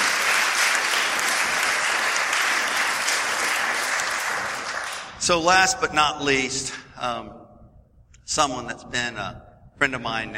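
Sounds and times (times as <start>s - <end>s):
audience applause: 0.0s - 5.2s
speech: 5.3s - 7.4s, 8.3s - 10.3s.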